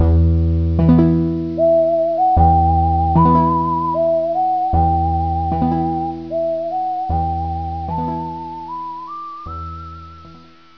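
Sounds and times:
jail tune: 0.8s - 10.4s.

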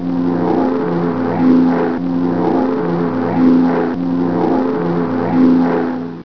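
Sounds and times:
plane: 0.0s - 6.2s.

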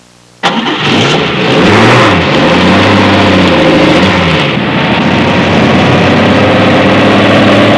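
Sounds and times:
transportation vehicle starting: 0.4s - 7.7s.

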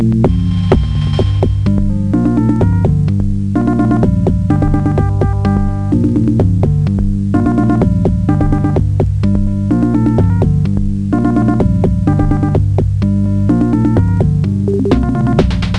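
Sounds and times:
tune: 0.2s - 15.7s.

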